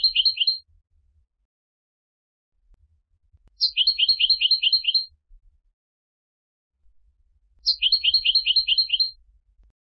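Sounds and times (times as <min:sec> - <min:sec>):
European goldfinch Carduelis carduelis twittering: 0:03.6 - 0:05.1, 0:07.6 - 0:09.2.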